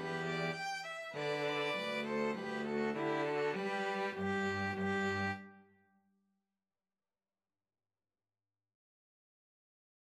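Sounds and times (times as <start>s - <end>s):
two violins playing: 0.0s - 5.6s.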